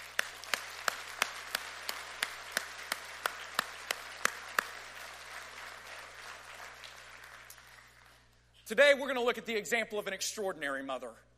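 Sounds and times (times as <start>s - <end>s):
audience applause: 0.0s - 8.3s
speech: 8.7s - 11.3s.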